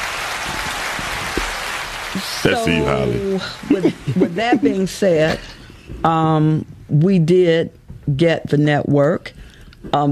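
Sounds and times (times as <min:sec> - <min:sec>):
crowd applauding: 0:00.0 - 0:04.6
speech: 0:02.4 - 0:10.1.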